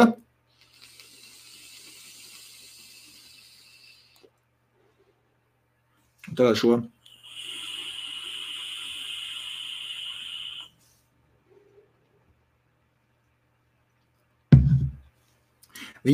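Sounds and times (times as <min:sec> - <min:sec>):
vape tank whistling through its airflow holes during a draw: 0:00.6 - 0:04.4, 0:07.0 - 0:10.8
speech: 0:06.3 - 0:07.0
short low thump: 0:14.5 - 0:15.0.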